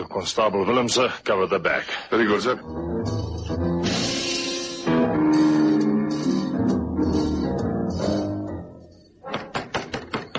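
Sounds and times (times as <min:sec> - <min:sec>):
speech: 0:00.0 - 0:03.2
dense busy noise: 0:00.0 - 0:10.3
firm knocks on a front door: 0:09.3 - 0:10.3.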